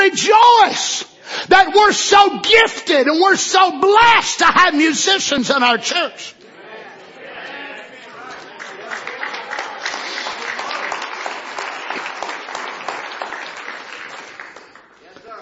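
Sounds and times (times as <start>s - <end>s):
speech: 0.1s - 6.4s
murmur of voices: 5.8s - 10.4s
audience clapping by hand: 8.2s - 15.3s.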